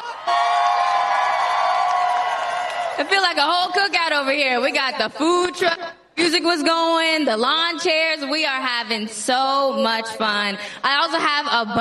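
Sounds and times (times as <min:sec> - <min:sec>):
crowd cheering and whooping: 0:00.0 - 0:03.3
speech: 0:03.0 - 0:11.8.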